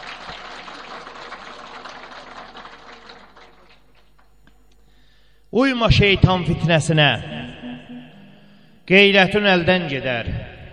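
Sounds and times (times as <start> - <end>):
applause for the elders at a gathering: 0.0 - 4.6
speech: 5.5 - 7.4, 8.9 - 10.4.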